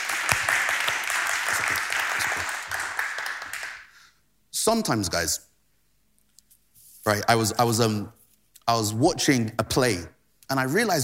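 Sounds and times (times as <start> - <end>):
audience clapping: 0.0 - 4.0
speech: 4.7 - 5.5, 7.1 - 11.0.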